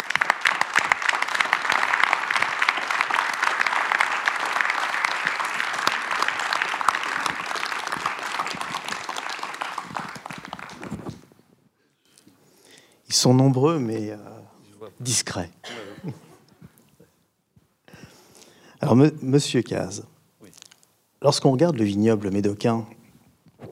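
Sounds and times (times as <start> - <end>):
audience applause welcoming Jean-Michel Cazes onto the stage: 0.0 - 11.4
speech: 13.2 - 14.3, 15.0 - 16.3, 18.9 - 20.1, 21.2 - 23.0.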